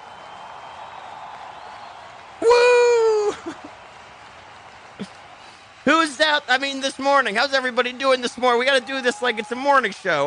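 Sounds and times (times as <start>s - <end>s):
crowd cheering and applauding: 0.0s - 10.2s
speech: 5.8s - 10.2s.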